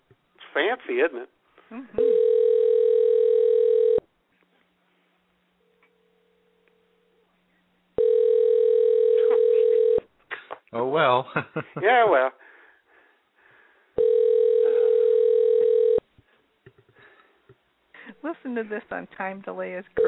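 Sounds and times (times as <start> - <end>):
speech: 0.6 - 2.4, 10.9 - 12.4, 18.4 - 20.0
telephone ringback tone on forwarded call: 2.0 - 4.0, 8.0 - 10.0, 14.0 - 16.0.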